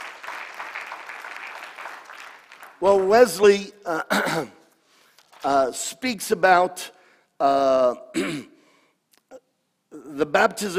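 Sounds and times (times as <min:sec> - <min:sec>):
audience clapping: 0:00.0 - 0:03.5
speech: 0:02.8 - 0:04.6, 0:05.4 - 0:08.5, 0:10.1 - 0:10.7.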